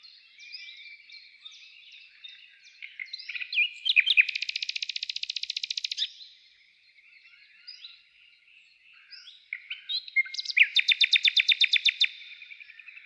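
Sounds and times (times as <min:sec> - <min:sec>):
bird chirping: 0:00.0 - 0:13.0.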